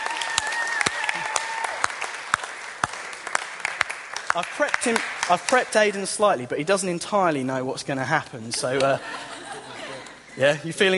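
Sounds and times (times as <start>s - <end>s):
audience round of applause: 0.0s - 5.8s
speech: 4.4s - 9.3s, 10.4s - 10.9s
laughter: 8.6s - 10.6s.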